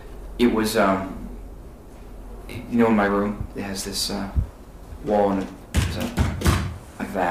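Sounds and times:
speech: 0.4s - 1.2s, 2.5s - 6.2s
fist thumping on wooden witness stand: 5.8s - 6.8s.

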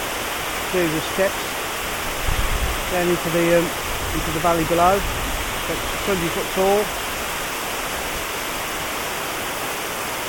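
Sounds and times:
water falling from a weir into a brick culvert: 0.0s - 10.2s
speech: 0.7s - 1.5s, 2.9s - 7.0s.

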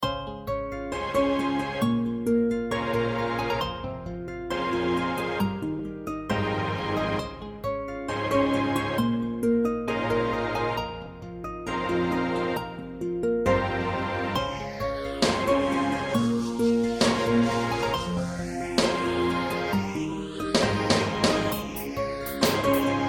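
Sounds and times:
R and B instrumental intro: 0.0s - 23.0s.

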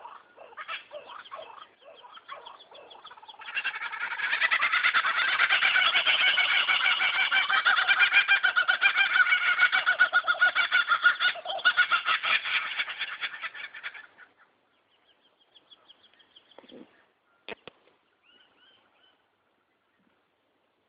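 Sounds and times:
kookaburras laughing: 0.0s - 14.5s
birds singing: 0.0s - 20.8s.

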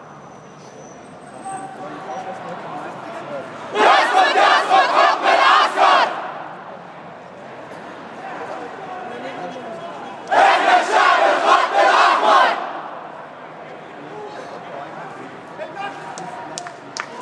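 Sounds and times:
people chanting against military rule with loud echo: 3.7s - 6.5s, 10.3s - 13.0s.

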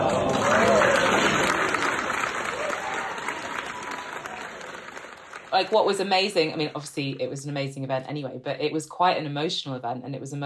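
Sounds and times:
audience applause: 0.0s - 6.7s
speech: 5.6s - 10.4s.

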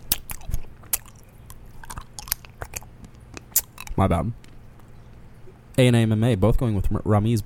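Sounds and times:
biting and chewing a caramel apple sucker: 0.0s - 5.6s
speech: 4.0s - 4.5s, 5.8s - 7.4s.

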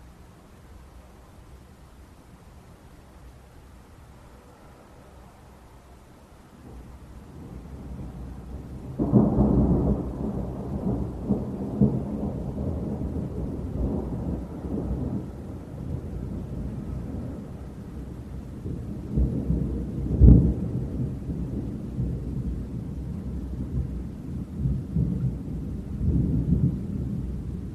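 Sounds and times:
dramatic thunderstorm in the early hours: 6.5s - 27.7s.

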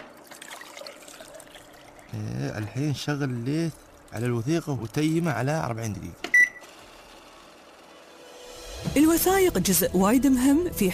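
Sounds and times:
water poured during document restoration work: 0.2s - 4.2s
speech: 2.1s - 6.2s, 8.9s - 10.9s.

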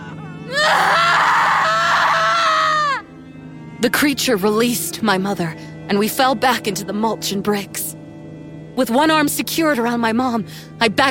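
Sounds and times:
woman screaming in pain: 0.2s - 3.0s
speech: 3.8s - 8.0s, 8.8s - 11.0s.

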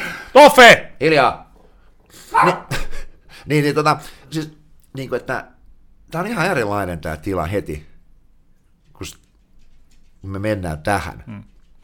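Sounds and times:
speech: 0.4s - 1.4s, 2.1s - 2.8s, 3.4s - 7.9s, 9.0s - 9.2s, 10.2s - 11.5s
dog barking: 2.3s - 2.7s.

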